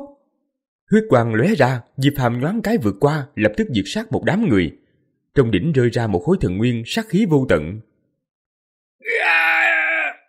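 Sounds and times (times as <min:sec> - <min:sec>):
speech: 0:00.9 - 0:04.8, 0:05.4 - 0:07.9
man screaming in agony: 0:09.0 - 0:10.2.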